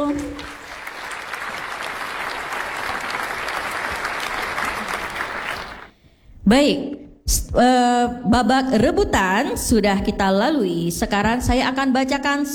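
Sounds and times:
audience clapping: 0.0s - 5.9s
speech: 6.5s - 12.5s.

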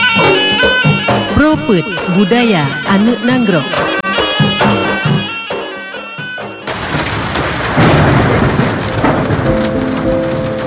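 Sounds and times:
bright rhythmic musical tones: 0.0s - 10.6s
heavy storm rain: 0.0s - 10.6s
speech: 1.6s - 4.0s
deep rolling thunder: 6.5s - 10.6s.

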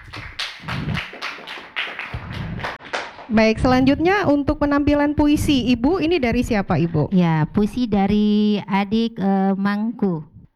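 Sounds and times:
applause, clapping hands: 0.0s - 3.3s
speech: 3.3s - 10.3s.

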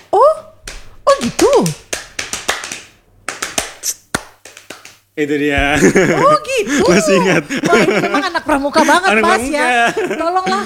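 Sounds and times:
scout rhythmic hand clapping: 0.6s - 5.1s
speech: 1.2s - 1.8s, 5.2s - 10.6s
laughter: 5.6s - 10.6s.

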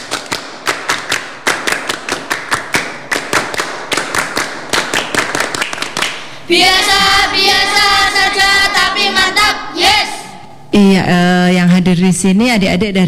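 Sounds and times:
children doing the rhythmic scout clap: 0.0s - 10.4s
speech: 6.5s - 7.8s, 10.8s - 13.0s.

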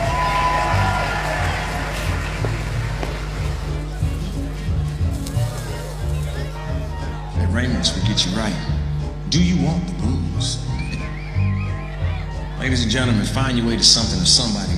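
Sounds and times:
crowd cheering and shouting: 0.0s - 4.0s, 10.8s - 13.3s
low droning hum: 0.0s - 14.7s
speech: 8.2s - 10.7s, 12.6s - 14.7s.

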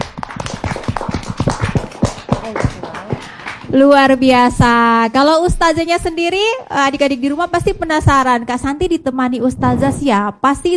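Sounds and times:
children clapping hands: 0.0s - 5.0s
speech: 3.7s - 10.7s.

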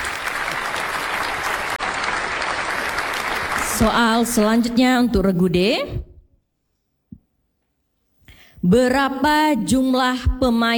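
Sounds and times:
quiz show audience applause: 0.0s - 4.7s
speech: 3.8s - 6.1s, 8.6s - 10.7s.

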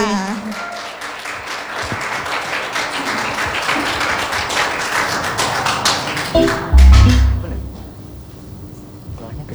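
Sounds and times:
audience clapping at a stage show before a pantomime act: 0.0s - 8.3s.

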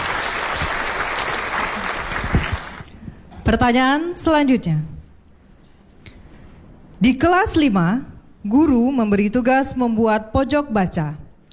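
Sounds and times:
audience applause: 0.0s - 3.0s
speech: 3.5s - 4.9s, 7.0s - 11.2s.

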